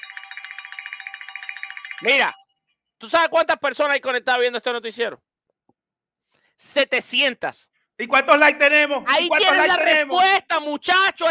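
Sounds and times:
fortune bell sound effect ringing: 0.0 - 2.6
speech: 2.0 - 2.4, 3.0 - 5.3, 6.6 - 11.2.

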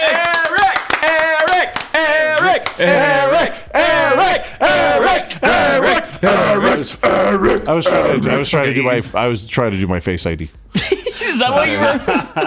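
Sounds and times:
round of applause with rapid hand clapping: 0.0 - 4.5
people whooping and cheering: 0.0 - 6.0
laughter: 0.0 - 8.8, 10.7 - 12.4
speech: 2.6 - 3.7, 4.4 - 12.4.

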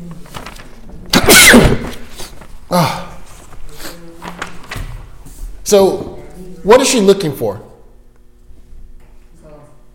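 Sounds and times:
sneeze: 1.1 - 2.2
speech: 5.7 - 6.0, 6.6 - 7.7.

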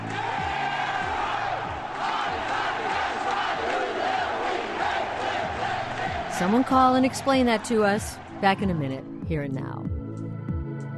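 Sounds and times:
crowd chanting a school cheer: 0.0 - 8.7
speech: 6.4 - 9.9.

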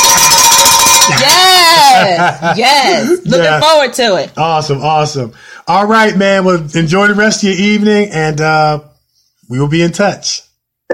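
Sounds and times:
bell being rung in quick strokes: 0.0 - 1.8
laughter: 1.1 - 3.5
speech: 2.0 - 8.9, 9.5 - 10.5.

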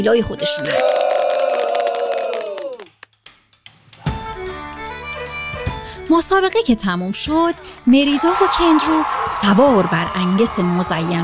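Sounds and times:
speech: 0.0 - 1.1, 6.1 - 11.2
spectators cheering: 0.6 - 3.0, 7.9 - 11.2.

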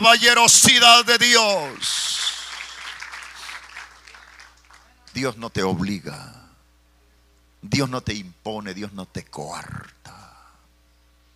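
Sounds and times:
speech: 0.0 - 2.0, 5.2 - 6.4, 7.6 - 10.2
congregation applauding at a church service: 1.2 - 5.4.

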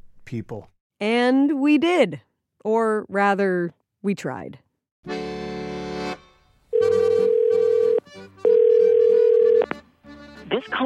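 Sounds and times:
speech: 0.3 - 5.2, 10.5 - 10.8
telephone call ringing tone: 6.7 - 9.7.

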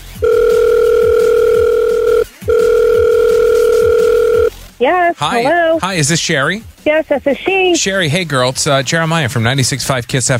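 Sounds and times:
telephone call dialing tone: 0.2 - 4.5
speech: 4.8 - 10.3.

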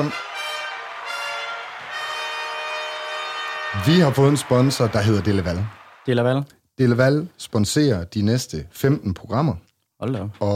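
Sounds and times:
speech: 0.0 - 0.2, 3.8 - 10.5
brassy fanfare: 0.0 - 6.1.

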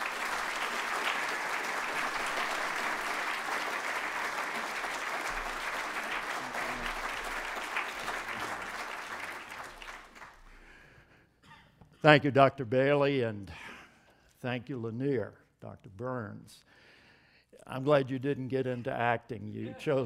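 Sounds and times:
audience applause welcoming a speaker at DTS: 0.0 - 10.5
speech: 12.0 - 13.7, 14.4 - 16.8, 17.6 - 20.0.

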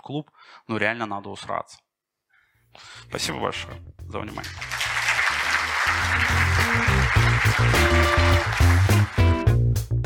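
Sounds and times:
speech: 0.0 - 1.9, 2.7 - 4.8, 5.9 - 9.3
live audience applause: 4.4 - 9.6.

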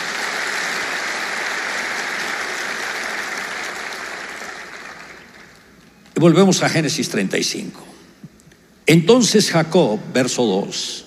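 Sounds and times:
audience applause: 0.0 - 5.7
speech: 6.2 - 7.9, 8.9 - 11.0.

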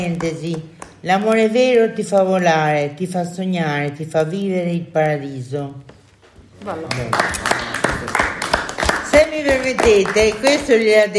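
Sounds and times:
crowd clapping in rhythm: 0.0 - 1.6, 6.8 - 11.1
speech: 0.0 - 6.0, 6.6 - 7.6, 9.4 - 11.1.

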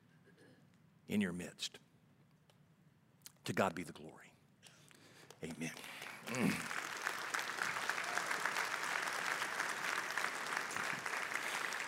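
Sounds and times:
speech: 1.1 - 1.9, 3.5 - 4.4, 5.4 - 6.8
audience applause: 5.6 - 11.8.

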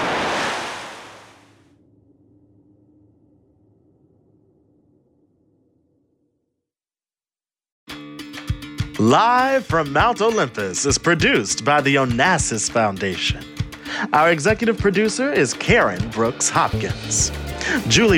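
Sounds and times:
river water surging and rising: 0.0 - 1.4
speech: 9.0 - 18.1.

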